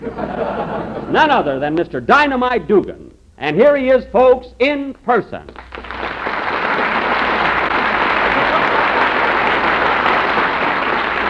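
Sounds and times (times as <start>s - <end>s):
laughter: 0.0s - 1.6s, 6.6s - 11.1s
speech: 1.1s - 5.7s
audience applause: 5.5s - 11.2s.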